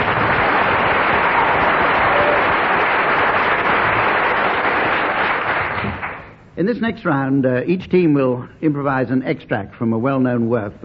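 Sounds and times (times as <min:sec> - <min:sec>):
audience applause: 0:00.0 - 0:06.3
speech: 0:06.6 - 0:10.8.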